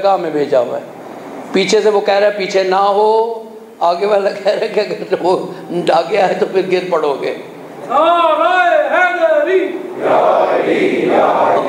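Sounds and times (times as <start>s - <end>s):
speech: 0.0s - 11.6s
crowd chanting a slogan: 9.4s - 11.6s.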